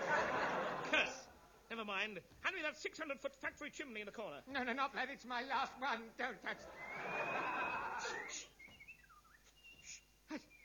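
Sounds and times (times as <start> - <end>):
laughter: 0.0 - 1.5, 6.6 - 8.6
speech: 1.8 - 8.6
person whistling a tune: 6.8 - 10.6.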